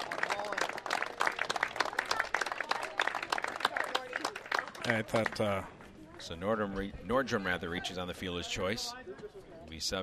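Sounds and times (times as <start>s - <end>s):
crowd applauding a senior player: 0.0s - 5.6s
speech: 4.8s - 10.0s.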